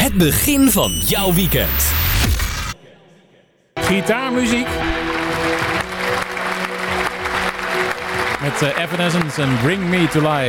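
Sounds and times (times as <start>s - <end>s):
speech: 0.2s - 2.4s, 3.9s - 5.0s, 8.4s - 10.4s
people clapping: 4.7s - 10.4s.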